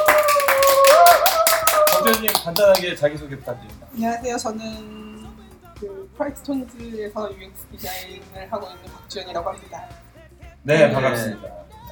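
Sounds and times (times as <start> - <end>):
small group applauding: 0.0 - 3.2
speech: 2.1 - 5.1, 5.8 - 11.8.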